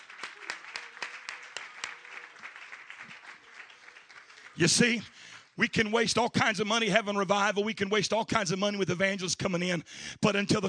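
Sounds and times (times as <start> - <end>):
speaker clapping his hands: 0.0 - 5.6
speech: 4.6 - 10.6.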